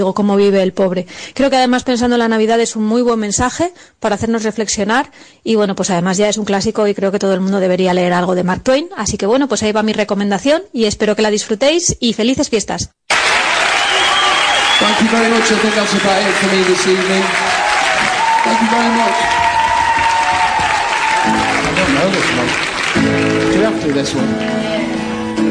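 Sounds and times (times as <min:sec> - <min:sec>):
speech: 0:00.0 - 0:13.0, 0:14.8 - 0:17.5, 0:18.4 - 0:19.4, 0:23.8 - 0:24.8
voices shouting and cheering: 0:13.1 - 0:24.0
crowd applause: 0:13.1 - 0:25.4.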